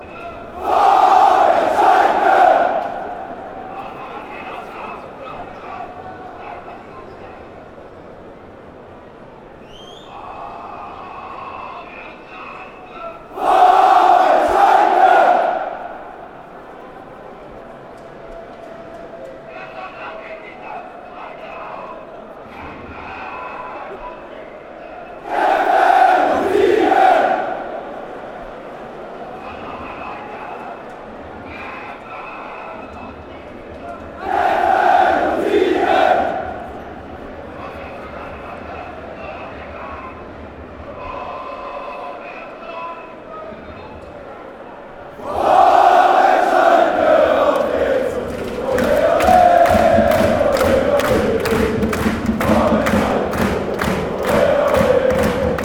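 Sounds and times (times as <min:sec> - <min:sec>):
football fans chanting: 0:00.1 - 0:06.8, 0:10.1 - 0:17.2, 0:24.9 - 0:30.8, 0:34.1 - 0:39.6, 0:45.1 - 0:55.6.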